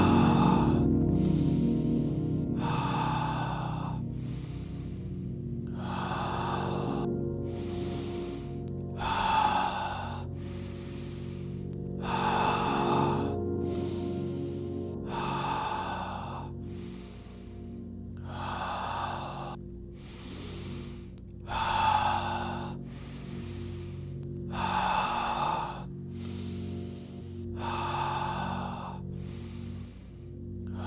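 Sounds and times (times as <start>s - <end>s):
slow deep guided breathing: 0.0s - 30.8s.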